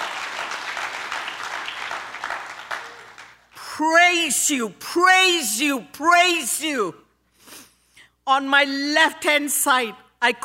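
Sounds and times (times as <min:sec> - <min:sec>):
audience clapping: 0:00.0 - 0:03.6
speech: 0:03.8 - 0:07.0, 0:08.3 - 0:10.4.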